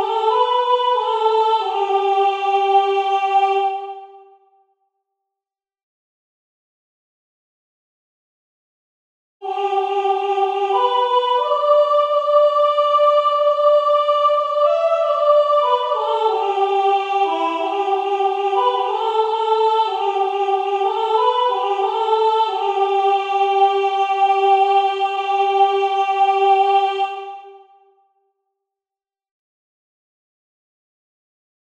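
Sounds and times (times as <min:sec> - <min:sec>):
soprano singing: 0:00.0 - 0:04.4, 0:09.4 - 0:27.8.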